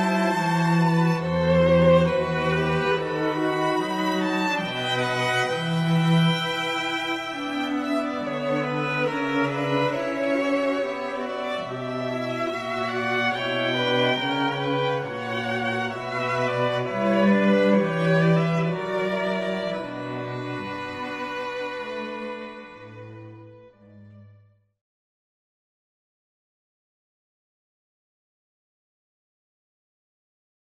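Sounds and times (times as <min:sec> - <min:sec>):
orchestral suite in D: 0:00.0 - 0:24.4.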